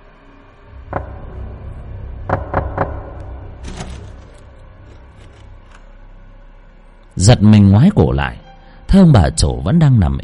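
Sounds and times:
knocking on a door: 0:00.8 - 0:04.4
speech: 0:07.2 - 0:10.2.

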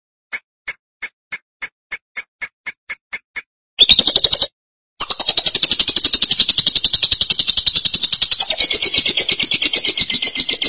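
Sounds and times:
lovebird chirps and trills: 0:03.8 - 0:10.6.

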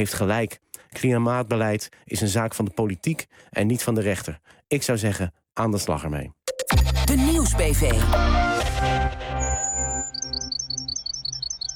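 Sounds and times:
speech: 0:00.0 - 0:06.4, 0:07.1 - 0:09.6
Bachman's sparrow song: 0:09.4 - 0:11.7.

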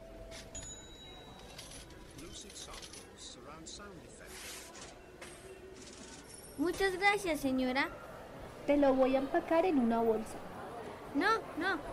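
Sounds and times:
coins handed over as change at a shop counter: 0:00.3 - 0:03.3, 0:04.3 - 0:06.8
noise and murmur: 0:00.6 - 0:11.9
speech: 0:02.2 - 0:04.6, 0:06.6 - 0:08.0, 0:08.7 - 0:10.5, 0:11.1 - 0:11.9.

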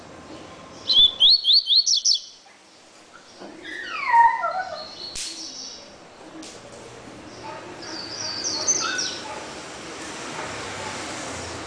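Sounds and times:
double-collared seedeater song: 0:00.3 - 0:06.4, 0:07.2 - 0:09.4.

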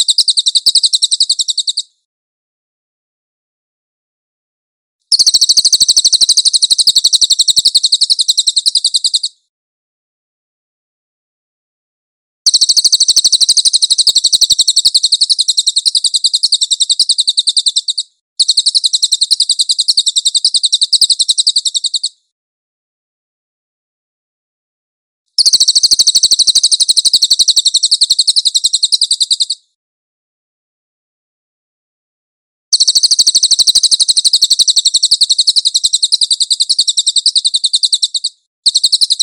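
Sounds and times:
cililin chirping trill: 0:00.0 - 0:02.0, 0:05.1 - 0:09.4, 0:12.5 - 0:22.3, 0:25.4 - 0:29.7, 0:32.7 - 0:39.2.

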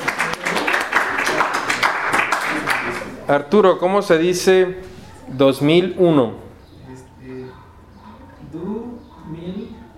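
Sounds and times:
students in an Esperanto class at UNAM clapping: 0:00.0 - 0:03.2
speech: 0:03.3 - 0:06.4.

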